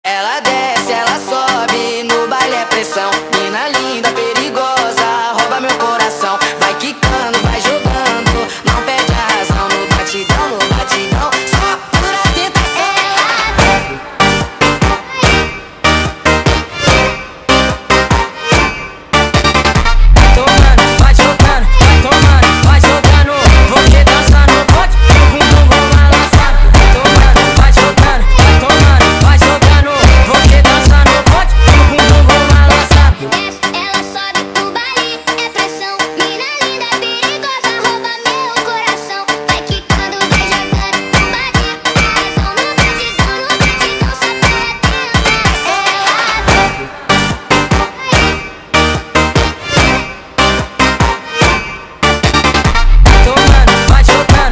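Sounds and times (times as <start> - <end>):
sped up funk music: 0.1 - 54.5.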